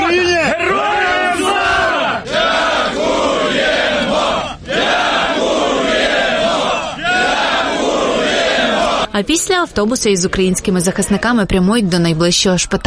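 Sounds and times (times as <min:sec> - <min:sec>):
crowd chanting and cheering: 0:00.0 - 0:09.1
speech: 0:09.2 - 0:12.8.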